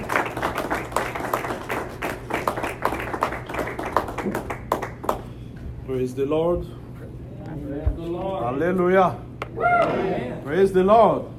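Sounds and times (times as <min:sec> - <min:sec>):
church congregation clapping to welcome a pastor: 0:00.0 - 0:05.3
speech: 0:06.0 - 0:06.8, 0:08.0 - 0:11.3.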